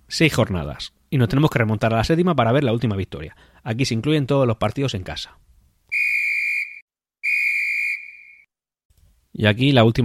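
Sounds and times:
speech: 0:00.1 - 0:05.5, 0:09.4 - 0:10.0
referee's double whistle ending a match: 0:05.9 - 0:08.5.

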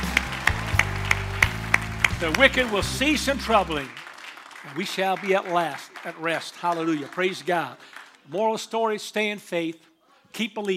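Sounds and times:
audience clapping hands: 0:00.0 - 0:08.6
speech: 0:02.2 - 0:04.0, 0:04.6 - 0:10.7.

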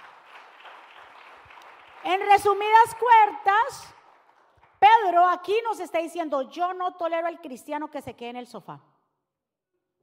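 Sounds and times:
audience applause: 0:00.0 - 0:04.7
speech: 0:02.0 - 0:04.0, 0:05.0 - 0:08.9.

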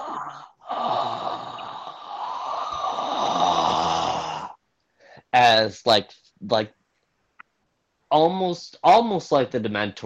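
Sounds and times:
person imitating hissing: 0:00.0 - 0:04.6
speech: 0:05.4 - 0:06.8, 0:08.1 - 0:10.0.

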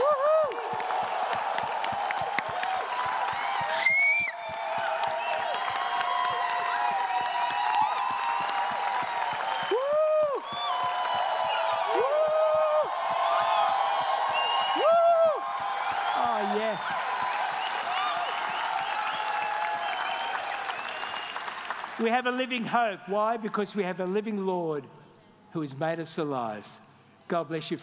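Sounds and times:
whoops and high-pitched shouts: 0:00.0 - 0:01.4, 0:02.6 - 0:20.5
large crowd clapping and cheering in celebration: 0:00.0 - 0:22.7
speech: 0:22.0 - 0:27.8.

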